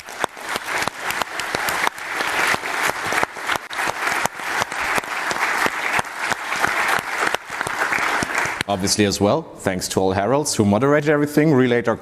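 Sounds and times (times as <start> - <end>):
audience applause: 0.0 - 8.9
speech: 8.7 - 12.0.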